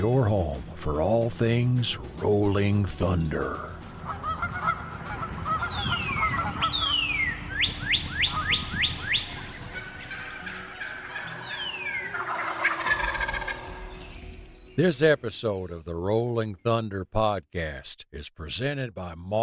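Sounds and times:
speech: 0:00.1 - 0:03.8, 0:14.8 - 0:19.4
waterfowl honking: 0:03.9 - 0:14.0.

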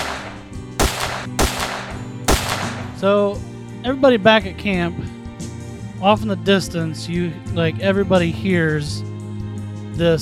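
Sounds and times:
gunshots fired into a rock: 0:00.0 - 0:03.2
speech: 0:03.0 - 0:05.1, 0:06.0 - 0:09.1, 0:10.0 - 0:10.2.

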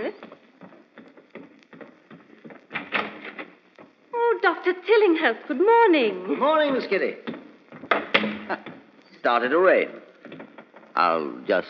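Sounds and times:
speech: 0:00.0 - 0:00.4, 0:04.6 - 0:07.3, 0:09.3 - 0:10.0, 0:11.0 - 0:11.6
dull woody knocking at a front door: 0:07.2 - 0:08.9.

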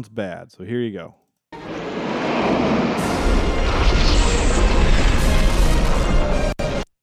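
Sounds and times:
speech: 0:00.0 - 0:01.2, 0:02.3 - 0:04.6
late 1980s lightning sound effect: 0:01.6 - 0:06.8.

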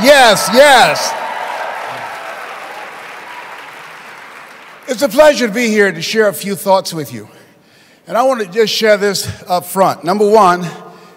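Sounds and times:
speech: 0:00.0 - 0:01.2, 0:04.9 - 0:07.4, 0:08.1 - 0:10.8
audience applause: 0:00.0 - 0:05.1.

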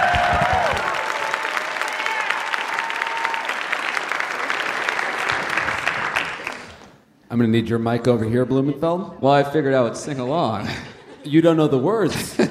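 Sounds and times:
audience applause: 0:00.0 - 0:06.9
speech: 0:07.4 - 0:12.5
laughter: 0:10.4 - 0:12.5.

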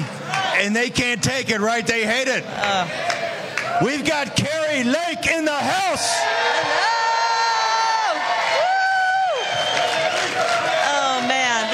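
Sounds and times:
crowd cheering: 0:00.0 - 0:00.8, 0:02.5 - 0:11.7
speech: 0:00.6 - 0:06.9
whoops and shouts: 0:06.6 - 0:11.1.

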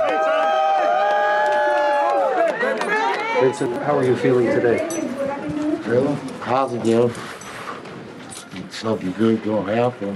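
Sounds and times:
supporters cheering outside courthouse: 0:00.0 - 0:04.4
speech: 0:03.4 - 0:07.3, 0:08.8 - 0:10.1.

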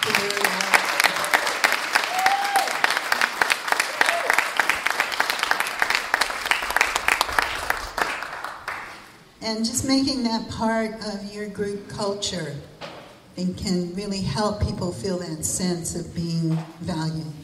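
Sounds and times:
round of applause from audience: 0:00.0 - 0:09.3
speech: 0:09.5 - 0:12.7, 0:13.4 - 0:17.4.

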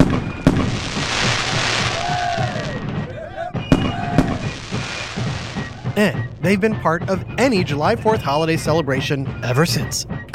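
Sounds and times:
fireworks exploding: 0:00.0 - 0:07.4
speech: 0:06.0 - 0:10.2.

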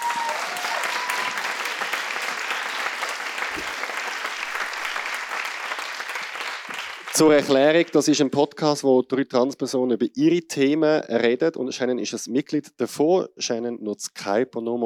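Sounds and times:
audience applause: 0:00.0 - 0:08.0
speech: 0:07.2 - 0:14.8.

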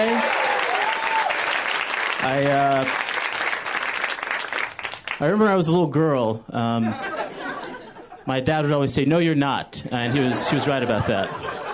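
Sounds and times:
audience round of applause: 0:00.0 - 0:05.2
speech: 0:05.2 - 0:07.1, 0:08.2 - 0:11.7
laughter: 0:06.7 - 0:08.9, 0:09.9 - 0:11.7.

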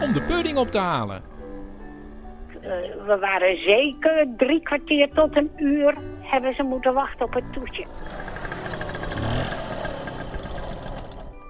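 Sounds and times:
scooter engine running: 0:00.0 - 0:02.6, 0:07.3 - 0:11.4
speech: 0:00.1 - 0:01.4, 0:02.6 - 0:09.3.

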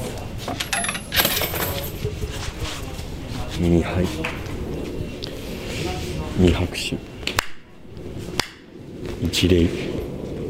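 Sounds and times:
low murmur: 0:00.0 - 0:10.4
coins dropping into a shrine offering box: 0:00.5 - 0:02.0
speech: 0:03.6 - 0:04.4, 0:06.4 - 0:07.1, 0:09.2 - 0:09.9.

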